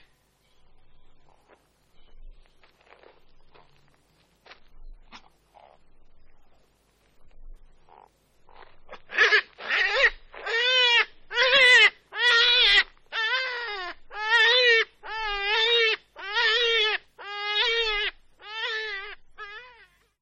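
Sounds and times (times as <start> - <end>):
European hare wailing cries: 9.1 - 20.0.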